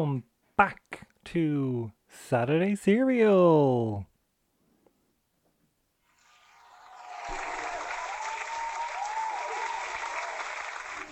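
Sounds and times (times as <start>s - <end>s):
speech: 0.0s - 4.1s
applause sound effect from a phone soundboard app: 6.2s - 11.1s.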